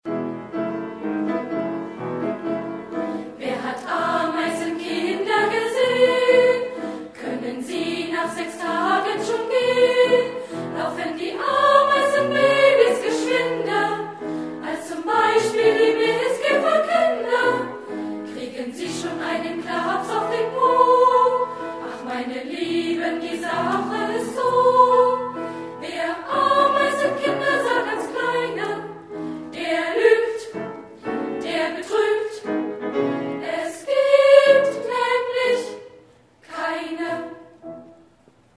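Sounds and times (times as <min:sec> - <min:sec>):
choir singing: 0:01.0 - 0:37.9.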